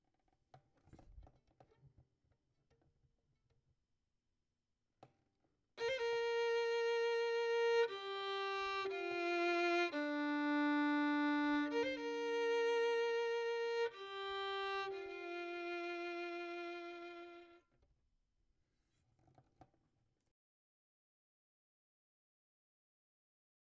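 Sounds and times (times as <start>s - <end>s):
violin: 5.8s - 17.7s.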